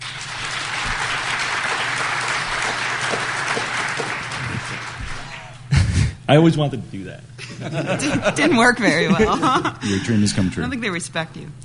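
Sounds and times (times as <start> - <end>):
audience applause: 0.0 - 5.6
laughter: 4.0 - 6.2, 7.4 - 10.4
speech: 6.3 - 11.6.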